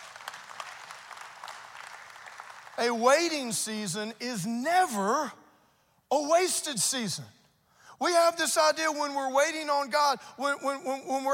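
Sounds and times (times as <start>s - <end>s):
audience applause: 0.0s - 2.9s
speech: 2.8s - 5.4s, 6.1s - 7.4s, 8.0s - 11.3s.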